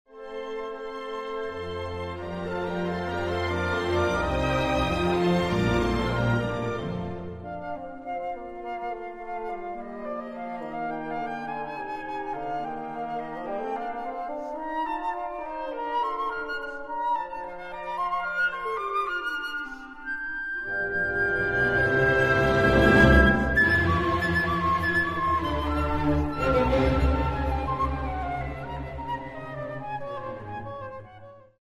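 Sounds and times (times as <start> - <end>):
flute concerto: 0.1 - 31.6.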